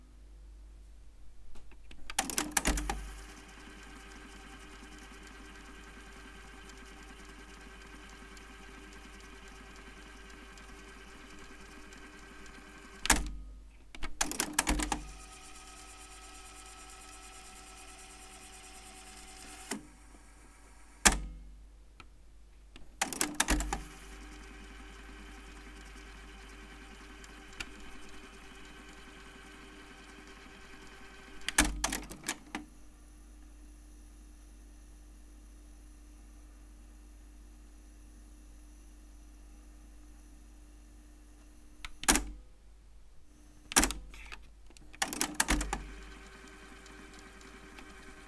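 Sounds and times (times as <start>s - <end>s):
tape player rewinding: 2.1s - 13.3s, 14.2s - 21.3s, 23.0s - 32.6s, 45.0s - 48.2s.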